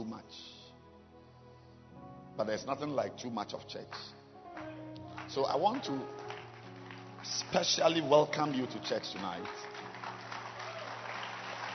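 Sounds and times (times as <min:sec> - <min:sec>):
speech: 0:02.4 - 0:04.2, 0:05.3 - 0:06.2, 0:07.2 - 0:09.7
audience hand clapping: 0:03.9 - 0:11.7.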